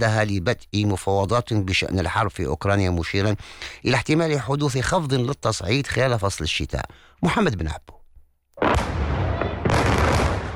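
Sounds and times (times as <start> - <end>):
speech: 0.0 - 8.0
strong explosions from Russian air strikes in Kyiv: 8.6 - 10.5.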